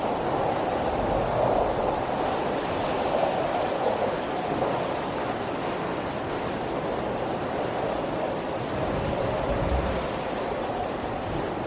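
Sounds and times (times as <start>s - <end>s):
windy storm: 0.0s - 11.6s.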